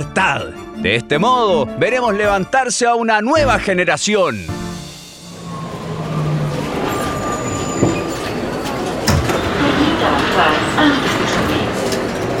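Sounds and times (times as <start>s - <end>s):
speech: 0.0s - 4.6s, 10.4s - 11.2s
train rumbling and clattering arriving at a terminal station: 5.0s - 12.3s.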